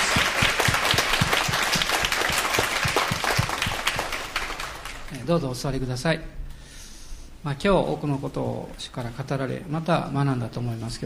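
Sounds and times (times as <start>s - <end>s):
audience applause: 0.0s - 5.2s
speech: 5.3s - 6.4s, 7.4s - 11.0s.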